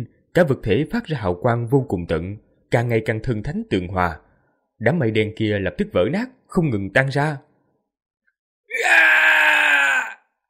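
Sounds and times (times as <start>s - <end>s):
speech: 0.4s - 4.2s, 4.8s - 7.5s
voices screaming: 8.7s - 10.2s.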